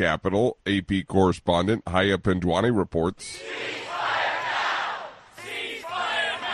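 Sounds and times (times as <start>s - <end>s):
speech: 0.0s - 3.9s
protest crowd chanting: 3.4s - 6.5s.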